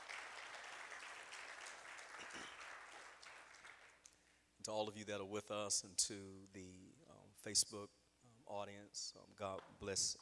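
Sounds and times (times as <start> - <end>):
audience clapping: 0.0 - 4.4
speech: 4.7 - 10.2.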